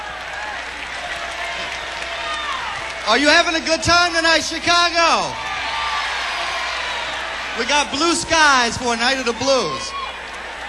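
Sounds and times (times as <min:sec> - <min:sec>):
audience applause at a blues concert in Chicago: 0:00.0 - 0:10.6
crowd noise: 0:00.0 - 0:10.6
speech: 0:03.1 - 0:05.5, 0:07.6 - 0:10.0.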